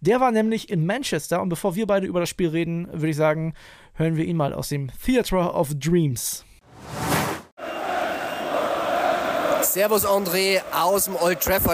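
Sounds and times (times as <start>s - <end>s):
speech: 0.0s - 7.1s, 9.7s - 11.7s
football fans singing: 7.6s - 11.7s.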